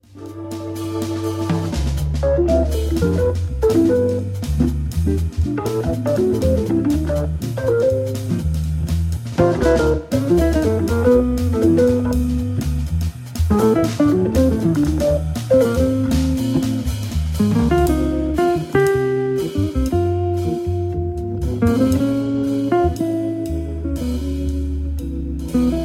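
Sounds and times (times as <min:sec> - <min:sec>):
organ trio: 0:00.0 - 0:25.8.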